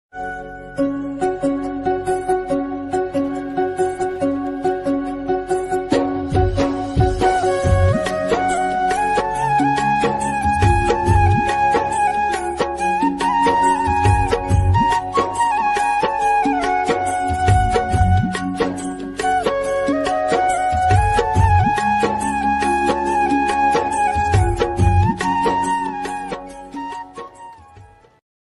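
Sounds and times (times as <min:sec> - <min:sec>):
sad devotional Krishna flute ringtone: 0:00.2 - 0:28.2.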